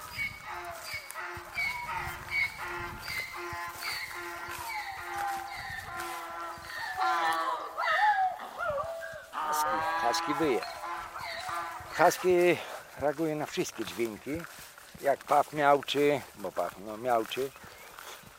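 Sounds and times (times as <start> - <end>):
donkey braying: 0.0 - 12.8
speech: 10.2 - 10.8, 12.0 - 17.7.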